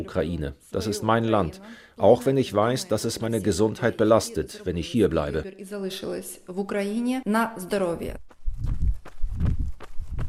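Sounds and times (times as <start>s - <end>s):
speech: 0.0s - 8.7s
footsteps of a slow jog on an asphalt forest path: 8.2s - 10.2s.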